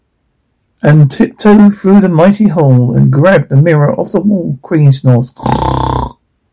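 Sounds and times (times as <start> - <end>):
speech: 0.8 - 6.1
person imitating snoring: 5.4 - 6.2.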